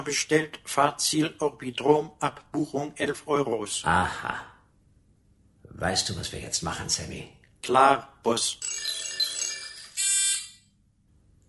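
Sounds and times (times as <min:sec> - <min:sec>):
speech: 0:00.0 - 0:04.5, 0:05.8 - 0:08.9
doorbell ringing: 0:08.6 - 0:10.6.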